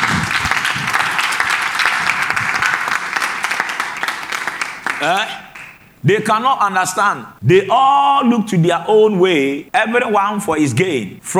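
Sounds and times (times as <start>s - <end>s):
audience clapping: 0.0s - 6.0s
speech: 5.0s - 5.4s, 6.0s - 11.3s.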